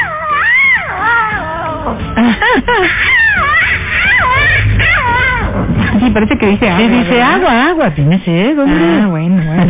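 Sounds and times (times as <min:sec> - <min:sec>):
lion cubs crying: 0:00.0 - 0:05.9, 0:06.6 - 0:07.8
speech: 0:06.2 - 0:09.6.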